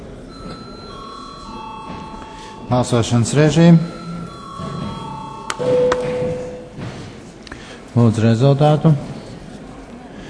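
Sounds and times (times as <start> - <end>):
electric bell rung before a vote: 0.3 - 6.8
speech: 2.7 - 4.0, 8.0 - 9.1.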